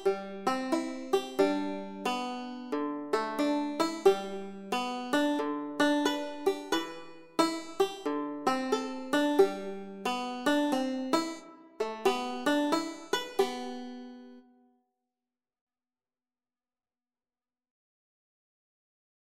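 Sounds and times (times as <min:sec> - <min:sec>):
banjo: 0:00.0 - 0:14.5.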